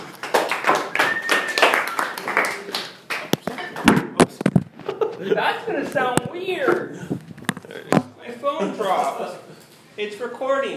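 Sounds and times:
crowd clapping for a comedian: 0.0 - 3.9
speech: 5.2 - 7.2, 7.8 - 9.4, 10.0 - 10.7.

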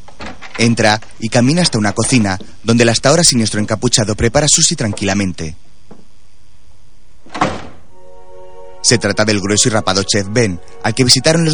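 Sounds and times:
faint sustained hum: 0.0 - 11.5
speech: 0.6 - 5.7, 8.8 - 11.5
heavy security door opening: 7.3 - 7.9.

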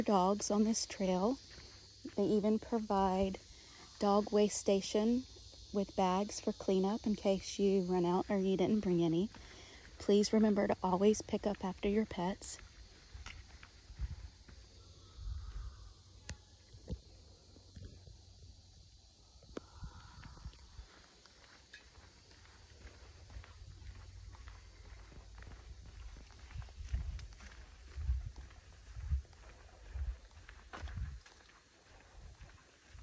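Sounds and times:
footsteps on a dirt footpath through trees at Ichetucknee Springs, Fort White: 0.0 - 4.0, 8.0 - 15.7, 19.6 - 33.0
speech: 0.0 - 12.6.

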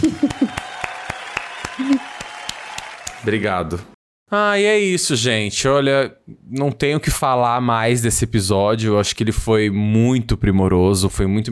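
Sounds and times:
laughter: 0.0 - 0.8
hand claps: 0.0 - 3.2
speech: 3.2 - 11.5.

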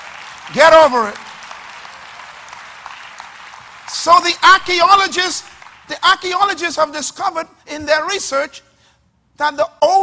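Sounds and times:
audience clapping: 0.0 - 6.7
speech: 0.5 - 1.2, 4.0 - 8.7, 9.4 - 10.0.

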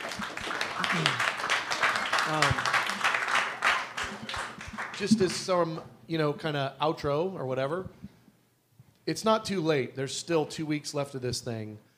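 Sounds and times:
audience clapping: 0.0 - 5.6
speech: 0.9 - 1.3, 2.3 - 2.7, 5.0 - 8.0, 9.1 - 11.9.

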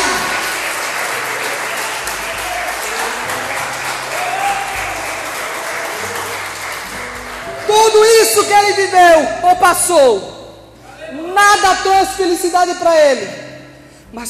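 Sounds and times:
audience applause: 0.0 - 8.2
speech: 8.4 - 10.3, 11.5 - 13.4.

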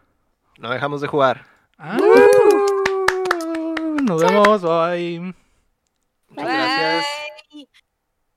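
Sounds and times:
speech: 0.6 - 2.9, 4.1 - 5.4, 6.3 - 7.7
hands clapping in a steady rhythm: 2.0 - 4.7.

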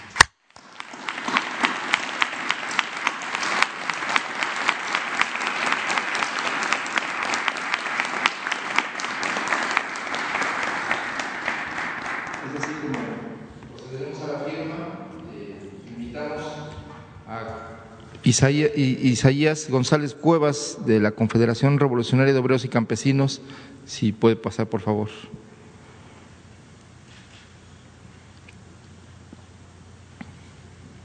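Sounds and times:
audience applause: 0.0 - 13.4
speech: 18.3 - 25.5.

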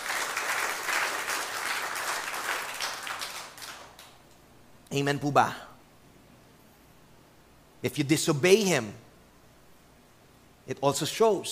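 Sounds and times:
church congregation applauding in praise of the Lord during a sermon: 0.0 - 4.3
speech: 4.9 - 5.7, 7.8 - 9.0, 10.7 - 11.5.

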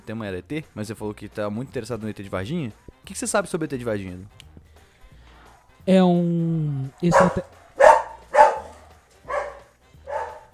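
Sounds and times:
speech: 0.1 - 4.5, 5.8 - 7.6
dog barking: 6.8 - 10.5.

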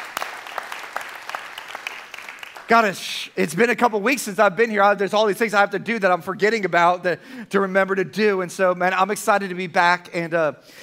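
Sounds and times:
church congregation applauding: 0.0 - 3.4
speech: 2.7 - 10.8.

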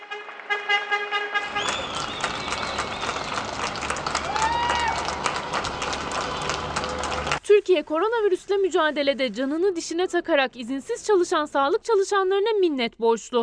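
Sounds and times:
applause from apartment windows and balconies: 0.0 - 7.4
whistles: 1.5 - 3.5
people shouting: 4.1 - 5.6
speech: 7.7 - 13.4.

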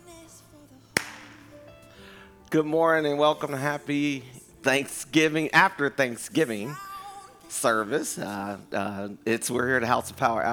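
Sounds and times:
hand clapping: 1.0 - 1.6
speech: 2.5 - 6.9, 7.5 - 10.5.

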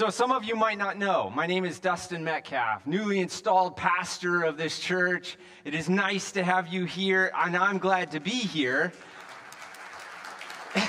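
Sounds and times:
speech: 0.0 - 9.1
audience applause: 8.8 - 10.8.

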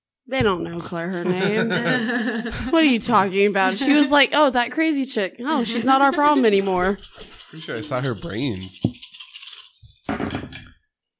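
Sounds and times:
speech: 0.3 - 9.0
laughter: 1.2 - 4.3, 5.6 - 8.7
dice rattling and tumbling across a hard surface: 6.4 - 9.8.

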